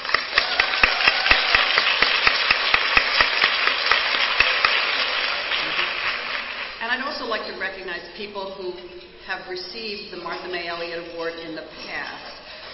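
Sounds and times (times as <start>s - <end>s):
audience applause: 0.0s - 6.8s
speech: 7.3s - 12.4s.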